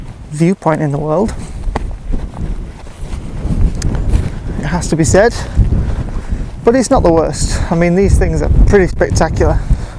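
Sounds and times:
wind blowing at an exposed hilltop viewpoint: 0:00.0 - 0:09.9
speech: 0:00.3 - 0:01.5, 0:04.7 - 0:05.6, 0:06.6 - 0:09.7.

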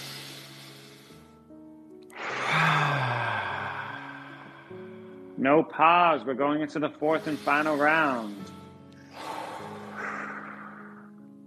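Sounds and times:
deep breath of a guided breathing round: 0:00.0 - 0:01.5, 0:02.1 - 0:05.4, 0:07.2 - 0:11.3
speech: 0:05.4 - 0:08.6.

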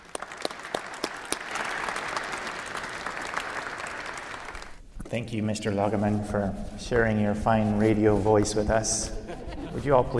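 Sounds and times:
church audience applauding to welcome a priest: 0:00.0 - 0:04.8
speech: 0:05.1 - 0:09.2, 0:09.8 - 0:10.1
laughter: 0:09.0 - 0:10.1.

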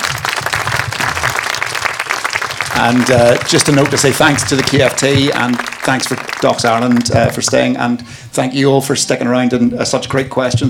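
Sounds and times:
audience round of applause: 0:00.0 - 0:07.8
speech: 0:02.8 - 0:10.6.

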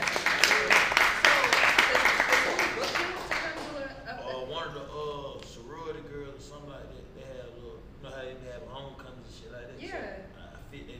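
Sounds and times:
audience applause for a comedian: 0:00.0 - 0:04.0.

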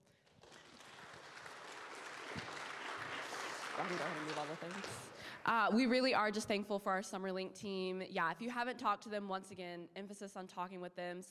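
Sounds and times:
audience clapping: 0:00.0 - 0:05.5
speech: 0:03.8 - 0:11.2.

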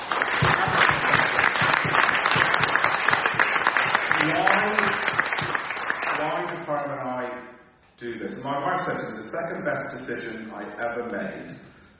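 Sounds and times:
crowd clapping: 0:00.0 - 0:06.8
speech: 0:08.4 - 0:11.7.

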